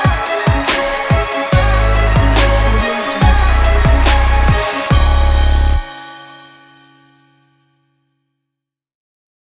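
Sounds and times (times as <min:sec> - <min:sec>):
rap drum kit: 0:00.0 - 0:06.0.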